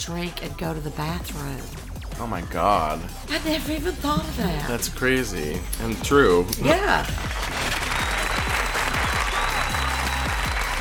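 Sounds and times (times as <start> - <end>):
speech: 0.0 - 7.5
audience applause for a comedian guest: 7.1 - 10.7.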